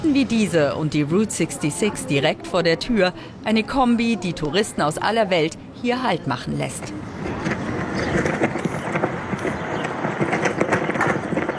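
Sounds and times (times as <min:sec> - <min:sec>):
speech: 0:00.0 - 0:07.3
US flag flapping in the wind in the Mojave Desert: 0:07.2 - 0:11.5.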